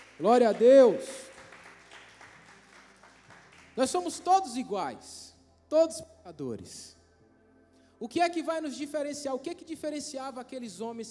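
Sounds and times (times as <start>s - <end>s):
audience applauding: 0.0s - 4.3s
speech: 0.2s - 1.2s, 3.8s - 7.0s, 8.0s - 11.0s.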